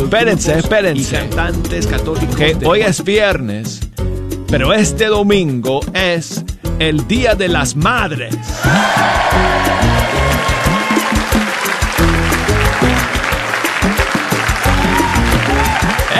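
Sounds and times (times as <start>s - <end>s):
speech: 0.0s - 3.9s, 4.5s - 10.2s
applause: 8.6s - 16.1s.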